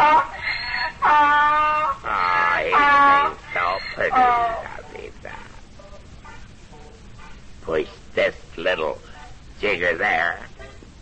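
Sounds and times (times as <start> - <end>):
donkey braying in strained hee-haw bursts: 0.0 - 5.6
speech: 4.0 - 4.6, 9.6 - 10.4.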